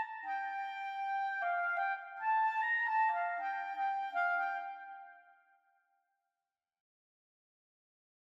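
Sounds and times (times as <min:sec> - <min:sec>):
B-flat clarinet: 0:00.0 - 0:05.3.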